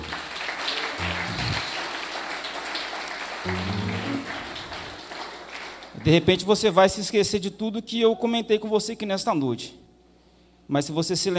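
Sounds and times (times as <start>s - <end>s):
audience applause: 0.0s - 6.0s
speech: 6.0s - 9.8s, 10.7s - 11.3s.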